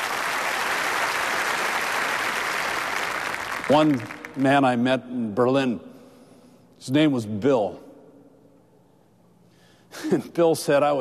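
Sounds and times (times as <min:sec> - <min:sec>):
audience applause: 0:00.0 - 0:04.4
speech: 0:03.7 - 0:05.9, 0:06.8 - 0:07.8, 0:10.0 - 0:10.9.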